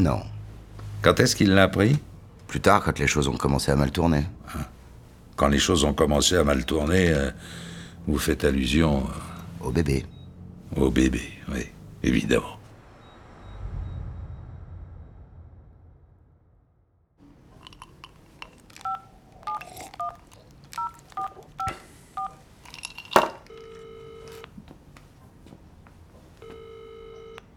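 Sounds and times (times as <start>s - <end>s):
speech: 0.0s - 0.3s, 1.0s - 4.8s, 5.4s - 10.1s, 10.7s - 12.6s
low rumble: 11.7s - 17.2s
telephone ringing tone: 18.4s - 22.4s, 23.3s - 24.6s, 26.4s - 27.5s
telephone keypad beeps: 18.8s - 22.4s, 23.4s - 24.5s, 26.4s - 27.5s.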